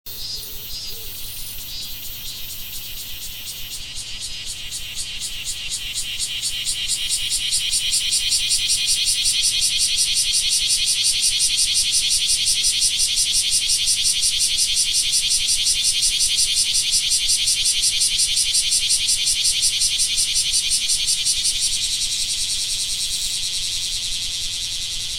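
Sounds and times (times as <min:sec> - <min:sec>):
kumazemi cicada calling: 0:00.1 - 0:25.1
nature ambience: 0:00.1 - 0:25.1.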